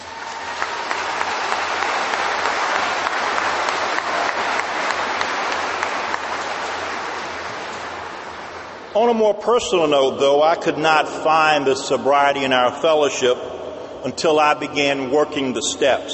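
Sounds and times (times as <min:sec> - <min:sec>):
audience applause: 0:00.0 - 0:08.7
speech: 0:09.0 - 0:16.1.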